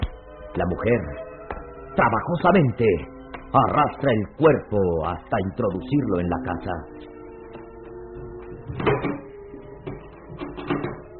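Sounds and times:
speech: 0.6 - 1.2, 2.0 - 7.1
door closing: 8.1 - 11.1.

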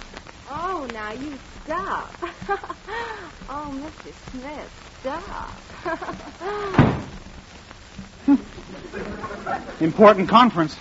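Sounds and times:
speech: 0.9 - 7.2, 8.3 - 10.8
laughter: 2.2 - 3.4, 5.7 - 6.8, 8.2 - 10.6
door creaking open: 6.7 - 7.1.

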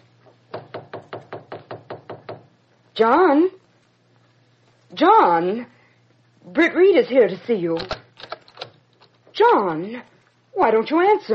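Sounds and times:
knocking on a study door: 0.5 - 2.5
speech: 3.0 - 3.6, 4.9 - 5.7, 6.5 - 8.0, 9.4 - 11.3.

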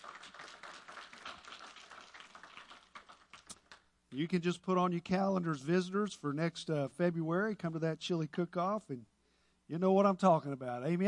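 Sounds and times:
room full of people clapping: 0.0 - 3.9
speech: 4.1 - 9.1, 9.7 - 11.0.

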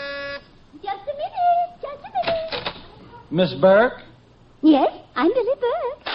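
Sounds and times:
door buzzer being pressed: 0.0 - 0.5
speech: 3.3 - 6.0.

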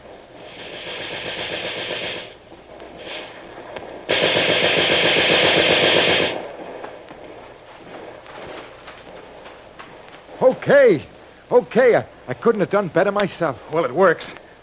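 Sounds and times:
automatic gunfire from a mounted gun: 0.4 - 8.0
speech: 10.7 - 14.6.

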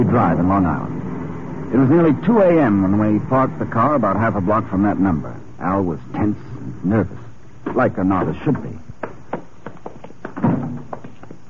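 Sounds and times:
speech: 0.0 - 1.0, 1.7 - 8.8
footsteps at night: 6.4 - 11.4.

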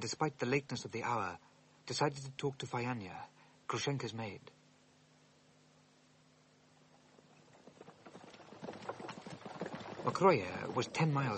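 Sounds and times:
speech: 0.0 - 4.6, 10.0 - 11.3
horses galloping: 6.9 - 11.3.

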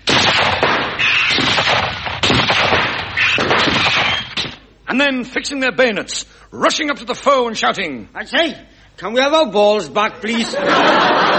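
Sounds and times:
musket volley gunfire: 0.0 - 4.6
speech: 4.9 - 11.3
laughter: 10.3 - 11.3.

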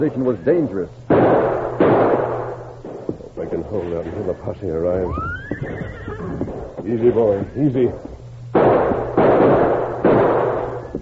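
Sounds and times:
speech: 0.0 - 1.0, 3.5 - 8.1
gunshots in a Western-style shootout along a creek bank: 1.1 - 4.3, 6.4 - 11.0.

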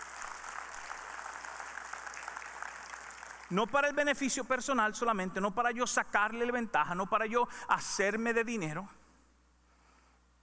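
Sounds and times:
audience applause: 0.0 - 3.5
speech: 3.5 - 9.0.

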